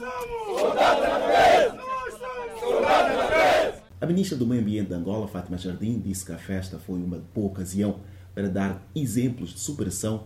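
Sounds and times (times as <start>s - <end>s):
forest rangers shouting a war cry in unison: 0.0s - 3.9s
speech: 4.0s - 10.2s.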